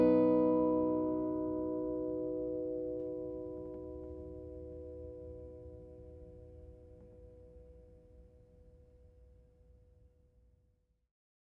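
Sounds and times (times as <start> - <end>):
Martin 00-42SC acoustic guitar: 0.0 - 6.0.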